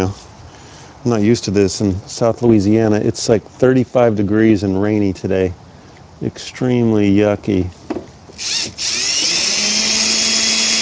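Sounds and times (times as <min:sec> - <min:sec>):
speech: 0:00.0 - 0:00.2, 0:01.0 - 0:05.6, 0:06.2 - 0:07.8, 0:08.4 - 0:09.0
power drill driving a screw: 0:08.4 - 0:10.7.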